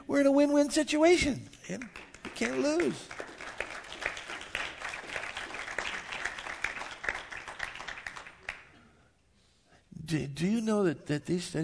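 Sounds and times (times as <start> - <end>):
speech: 0.1 - 3.2, 10.1 - 11.6
small audience applause: 1.7 - 8.8.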